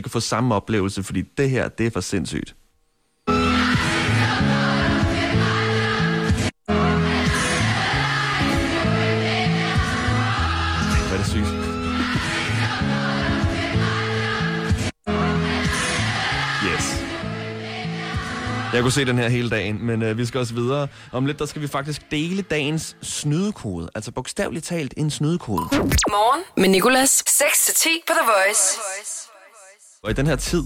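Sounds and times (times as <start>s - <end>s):
speech: 0.0s - 2.6s, 18.8s - 29.3s, 30.0s - 30.6s
people singing from balconies and windows: 3.3s - 19.3s.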